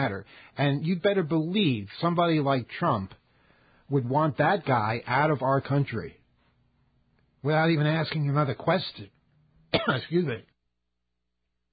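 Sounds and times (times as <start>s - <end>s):
speech: 0.0s - 3.2s, 3.9s - 6.2s, 7.4s - 10.5s
person coughing and throat clearing after choking on words: 9.7s - 10.3s.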